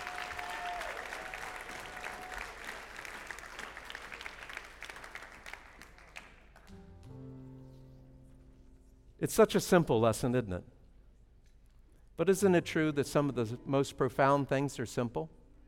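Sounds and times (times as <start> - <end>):
audience applause: 0.0 - 6.7
speech: 9.2 - 10.7, 12.2 - 15.4.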